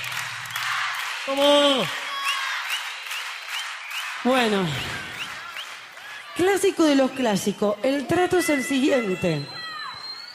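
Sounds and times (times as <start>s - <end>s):
audience applause at live concert: 0.0s - 7.3s
speech: 1.3s - 2.0s, 4.2s - 5.0s, 6.4s - 9.6s.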